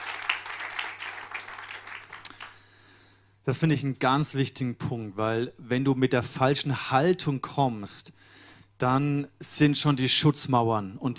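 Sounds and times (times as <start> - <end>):
clapping applause: 0.0 - 2.6
speech: 3.4 - 11.1.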